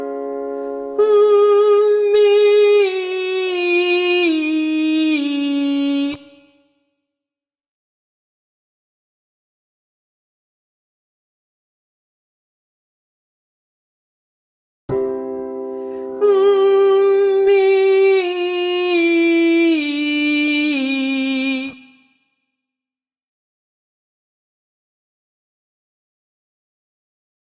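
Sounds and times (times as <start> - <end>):
person humming a descending legato line: 1.0 - 6.3, 16.1 - 21.9.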